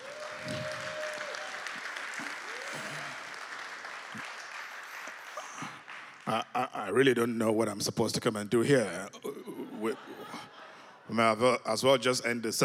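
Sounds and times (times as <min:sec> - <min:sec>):
church congregation applauding: 0:00.0 - 0:06.7
speech: 0:06.3 - 0:09.2, 0:09.8 - 0:10.1, 0:11.1 - 0:12.6
laughter: 0:09.2 - 0:11.5.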